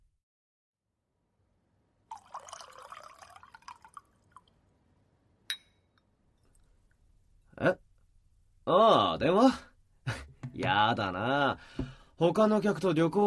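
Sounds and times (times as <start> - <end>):
tea pouring into a cup: 2.1 - 4.6
cup clink: 5.5 - 6.0
speech: 7.6 - 7.8, 8.7 - 9.7, 10.6 - 13.2.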